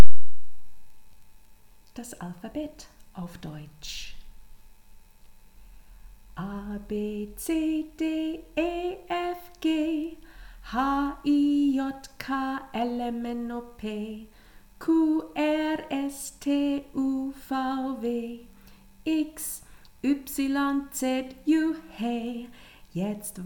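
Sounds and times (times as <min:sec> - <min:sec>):
German children's song: 0:06.4 - 0:18.5, 0:19.1 - 0:23.4.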